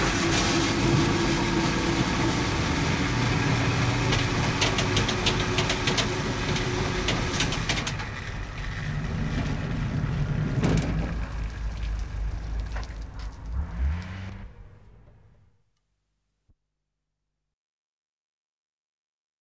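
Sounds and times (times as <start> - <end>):
train passing: 0.0 - 15.4.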